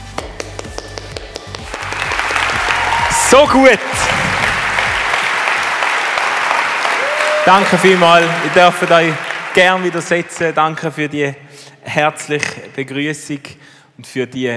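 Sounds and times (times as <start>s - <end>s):
large audience applause: 1.6s - 10.8s
cheers: 1.8s - 10.1s
speech: 3.3s - 4.2s, 7.4s - 14.5s.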